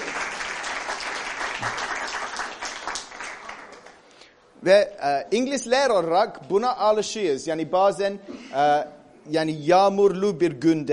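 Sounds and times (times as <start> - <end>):
audience applause: 0.0 - 4.0
speech: 4.6 - 10.9.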